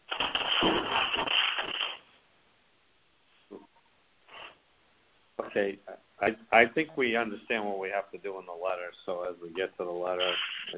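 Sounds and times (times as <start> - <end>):
paper rattling on a call line: 0.1 - 2.0, 10.2 - 10.7
speech: 5.6 - 10.7.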